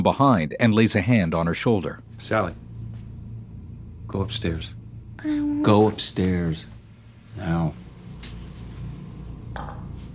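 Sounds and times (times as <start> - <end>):
speech: 0.0 - 2.6, 4.1 - 6.8, 7.4 - 7.8
bowl set down on a basement floor: 9.6 - 10.0.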